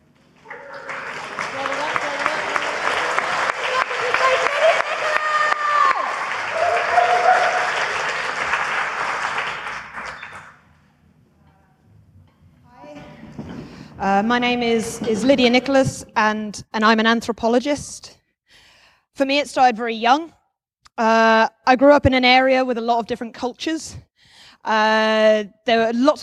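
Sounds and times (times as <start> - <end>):
audience applause: 0.4 - 10.6
speech: 14.2 - 18.1, 19.2 - 20.4, 21.0 - 26.2.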